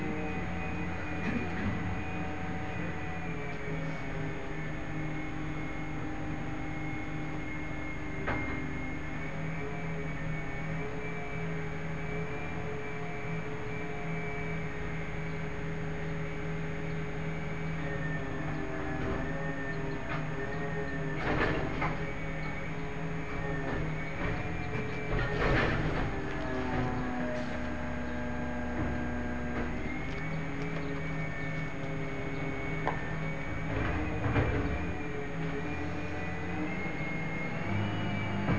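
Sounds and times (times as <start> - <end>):
garbage truck engine droning: 0.0 - 38.5
rushing clattering bursts: 18.5 - 37.8.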